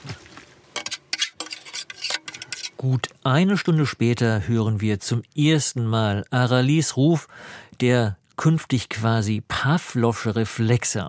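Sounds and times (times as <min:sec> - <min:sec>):
dishes and cutlery clinking in a desert camp kitchen: 0:00.8 - 0:02.8
speech: 0:02.8 - 0:11.0.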